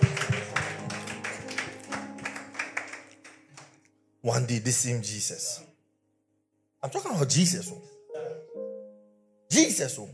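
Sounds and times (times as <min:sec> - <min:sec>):
audience clapping: 0:00.0 - 0:03.8
speech: 0:04.2 - 0:05.7, 0:06.8 - 0:07.9, 0:09.5 - 0:10.1.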